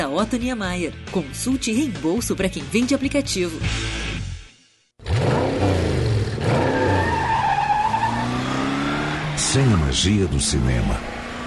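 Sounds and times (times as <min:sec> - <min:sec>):
speech: 0:00.1 - 0:04.1, 0:09.5 - 0:11.2
car engine revving: 0:05.0 - 0:11.4
screeching tire skids: 0:05.0 - 0:11.4.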